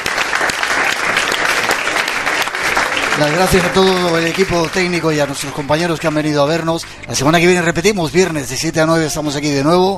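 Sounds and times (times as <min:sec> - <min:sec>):
audience applause: 0:00.0 - 0:06.2
speech: 0:03.2 - 0:09.9.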